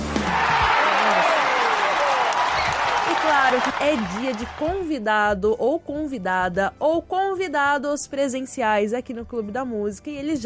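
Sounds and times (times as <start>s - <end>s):
applause: 0.1s - 4.9s
speech: 3.6s - 10.4s.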